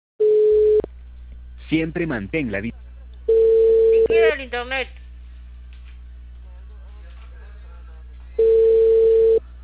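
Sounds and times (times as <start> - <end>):
telephone ringback tone: 0.2 - 0.8, 3.3 - 4.2, 8.4 - 9.4
low hum: 0.2 - 9.6
speech: 1.7 - 2.9, 4.1 - 5.0.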